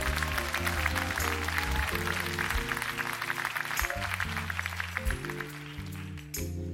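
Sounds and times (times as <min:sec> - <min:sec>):
church audience clapping: 0:00.0 - 0:06.6.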